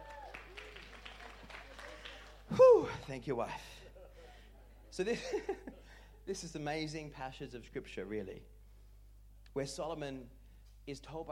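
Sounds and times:
audience applause: 0.0s - 2.7s
speech: 2.5s - 3.8s, 5.0s - 8.5s, 9.5s - 11.3s.

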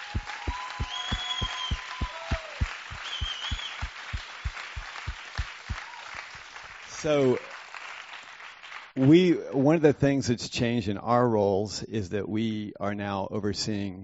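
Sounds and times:
high drawn-out whistle-like cries: 0.0s - 3.9s
crowd clapping in steady rhythm: 0.0s - 9.7s
speech: 7.0s - 7.5s, 9.0s - 14.0s.

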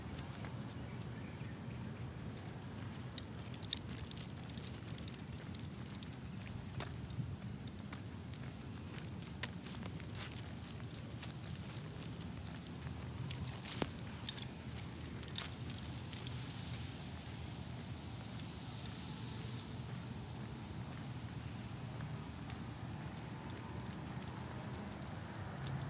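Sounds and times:
footsteps clicks and scuffs on a night dog walk: 0.0s - 1.2s, 2.2s - 25.8s
steady low rumble in a Phoenix neighborhood: 0.0s - 25.8s
high hiss: 3.1s - 25.8s.

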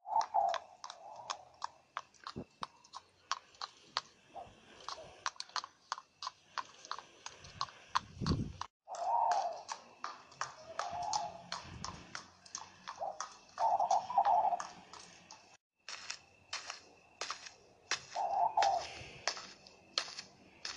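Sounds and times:
horse hooves clip-clopping: 0.1s - 20.7s
horse breathing: 2.1s - 8.7s, 10.9s - 15.6s.

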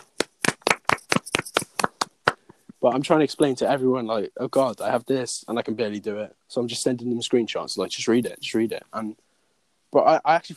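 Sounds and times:
sharp hand claps: 0.0s - 2.7s
speech: 2.8s - 9.2s, 9.9s - 10.5s.

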